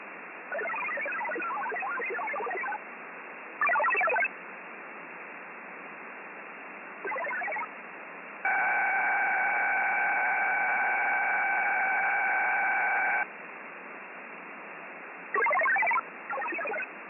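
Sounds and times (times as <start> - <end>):
satellite radio data signal: 0.5 - 2.8, 3.6 - 4.3, 7.0 - 7.7, 8.4 - 13.3, 15.4 - 16.9.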